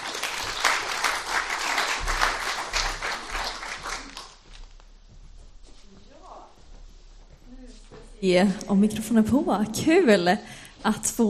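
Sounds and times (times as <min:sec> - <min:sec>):
audience applauding: 0:00.0 - 0:04.6
speech: 0:08.2 - 0:11.2.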